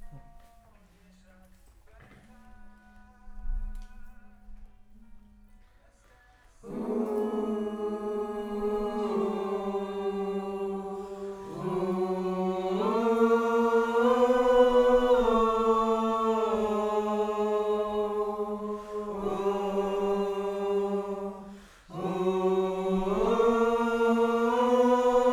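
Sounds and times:
distant choir: 0:06.6 - 0:25.3.

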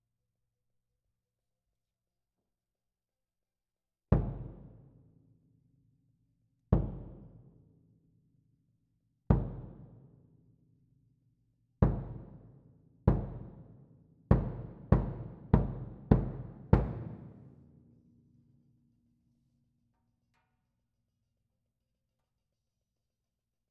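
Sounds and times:
close-miked kick drum: 0:04.2 - 0:04.8, 0:06.7 - 0:07.4, 0:09.3 - 0:10.0, 0:11.8 - 0:12.5, 0:13.1 - 0:17.5.

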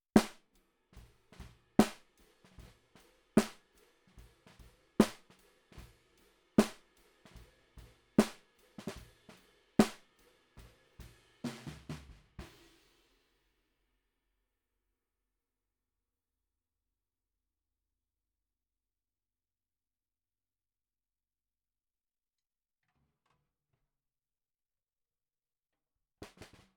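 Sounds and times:
bottom snare drum: 0:00.0 - 0:13.1.

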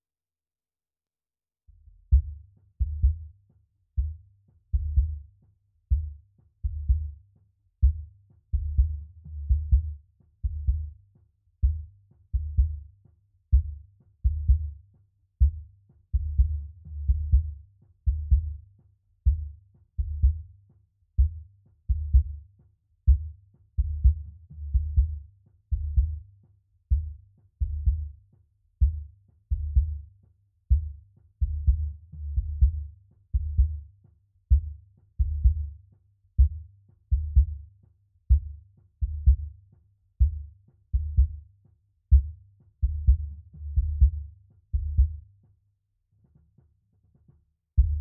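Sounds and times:
sub bass: 0:01.9 - 0:03.3, 0:04.0 - 0:05.2, 0:05.9 - 0:07.2, 0:07.8 - 0:11.0, 0:11.6 - 0:12.8, 0:13.5 - 0:14.8, 0:15.4 - 0:18.6, 0:19.2 - 0:20.5, 0:21.2 - 0:22.4, 0:23.1 - 0:26.2, 0:26.9 - 0:28.2, 0:28.8 - 0:30.0, 0:30.7 - 0:33.8, 0:34.5 - 0:35.7, 0:36.4 - 0:37.6, 0:38.3 - 0:39.6, 0:40.2 - 0:41.4, 0:42.1 - 0:45.2, 0:47.8 - 0:47.9.

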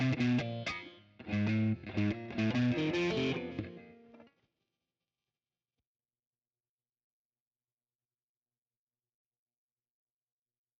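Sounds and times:
guitar: 0:00.0 - 0:04.5.

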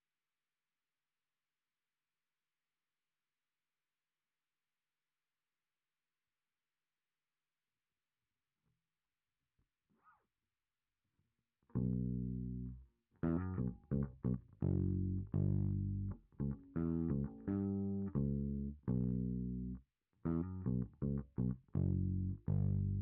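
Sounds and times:
bass guitar through SansAmp: 0:11.7 - 0:23.0.

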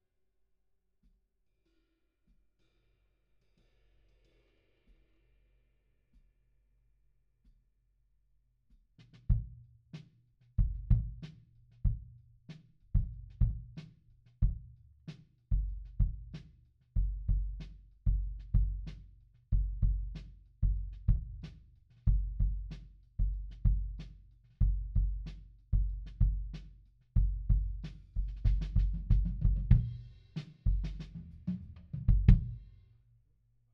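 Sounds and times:
kick drum: 0:09.2 - 0:09.7, 0:10.6 - 0:12.2, 0:13.0 - 0:13.8, 0:14.4 - 0:14.7, 0:15.5 - 0:16.4, 0:17.0 - 0:21.5, 0:22.1 - 0:26.6, 0:27.2 - 0:30.1, 0:30.7 - 0:32.6.

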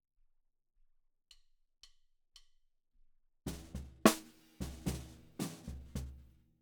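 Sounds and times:
snare drum: 0:03.5 - 0:06.3.

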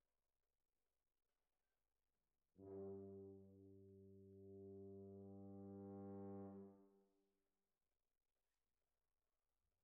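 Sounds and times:
trumpet: 0:02.6 - 0:07.0.

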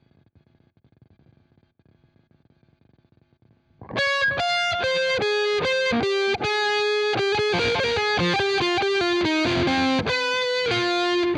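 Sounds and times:
guitar: 0:03.8 - 0:11.3.

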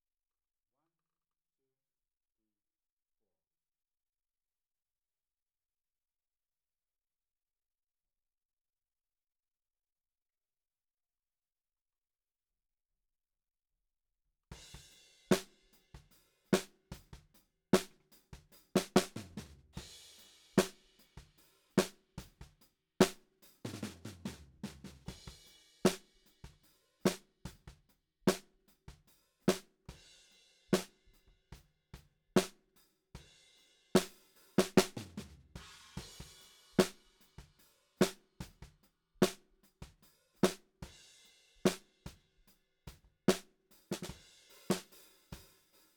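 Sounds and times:
snare drum: 0:14.8 - 0:29.7, 0:30.8 - 0:31.0, 0:32.4 - 0:32.6, 0:34.0 - 0:40.7, 0:41.7 - 0:41.9, 0:43.3 - 0:45.7.

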